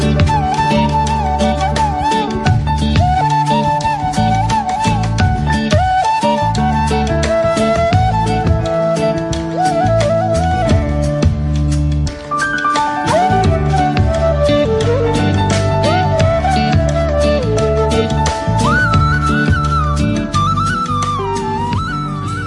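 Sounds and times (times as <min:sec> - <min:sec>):
flute ringtone: 0:00.2 - 0:11.4, 0:12.3 - 0:22.4.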